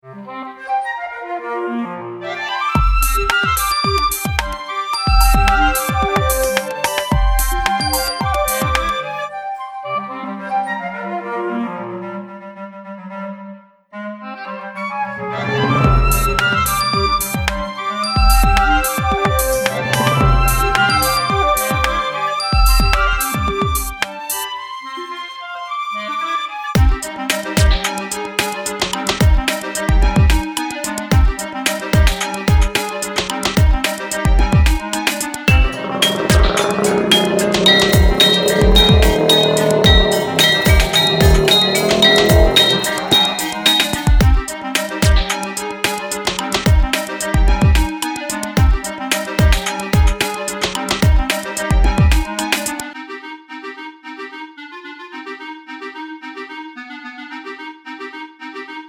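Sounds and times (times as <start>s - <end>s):
experimental orchestral music: 0.0s - 58.8s.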